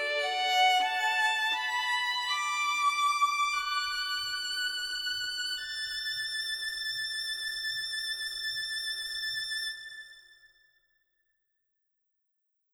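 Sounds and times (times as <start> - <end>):
solo violin from a sampler: 0.0 - 10.0.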